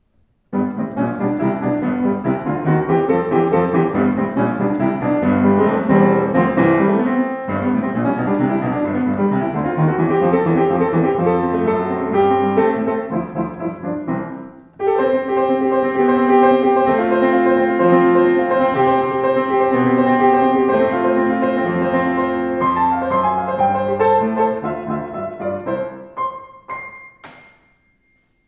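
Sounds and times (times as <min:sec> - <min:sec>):
Sauter Pure Basic piano: 0:00.0 - 0:28.4.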